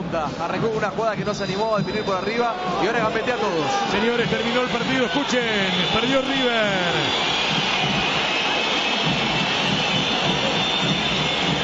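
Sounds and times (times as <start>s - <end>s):
speech: 0.1s - 7.6s
stadium crowd whistling in disapproval: 1.4s - 11.6s
dense stadium crowd roar: 2.5s - 11.6s.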